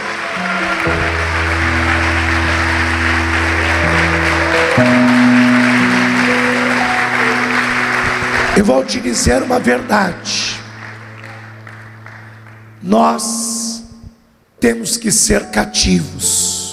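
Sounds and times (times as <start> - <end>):
audience applauding: 0.0 - 12.9
sustained keyboard or organ chords: 0.0 - 14.3
speech: 8.7 - 10.6, 12.8 - 13.4, 14.6 - 16.6.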